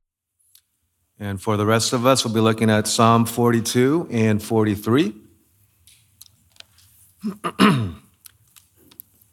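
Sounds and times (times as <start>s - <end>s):
speech: 1.2s - 5.2s, 7.2s - 8.0s
throat clearing: 7.2s - 8.1s.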